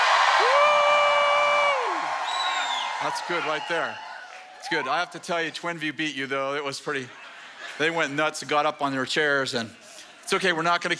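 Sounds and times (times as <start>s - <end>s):
crowd joyful shout: 0.0s - 5.1s
speech: 3.0s - 7.2s, 7.8s - 10.9s.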